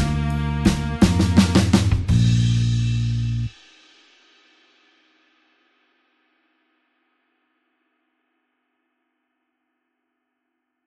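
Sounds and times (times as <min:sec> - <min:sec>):
slow blues horns in B flat: 0:00.0 - 0:03.5.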